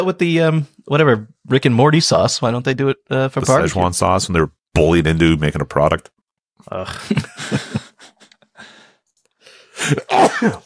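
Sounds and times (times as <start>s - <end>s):
speech: 0.0s - 7.8s, 9.8s - 10.6s
sneeze: 10.0s - 10.6s.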